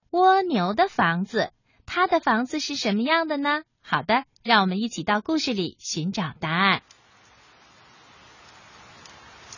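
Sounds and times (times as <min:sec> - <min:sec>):
speech: 0:00.1 - 0:06.9
rain pattering on flowers: 0:06.8 - 0:09.5
raindrop taps: 0:08.4 - 0:09.5.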